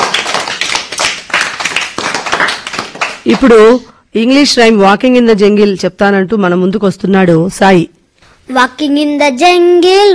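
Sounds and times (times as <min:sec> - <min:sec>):
audience clapping after a speaker: 0:00.0 - 0:03.8
speech: 0:03.2 - 0:10.1.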